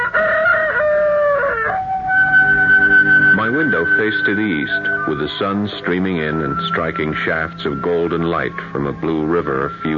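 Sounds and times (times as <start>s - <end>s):
rooster crowing at sunrise: 0.0s - 3.8s
speech: 3.8s - 9.9s.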